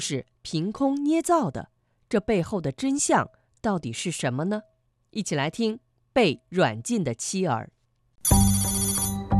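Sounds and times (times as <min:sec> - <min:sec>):
speech: 0:00.0 - 0:08.6
phone notification tone for an incoming message: 0:08.3 - 0:09.2.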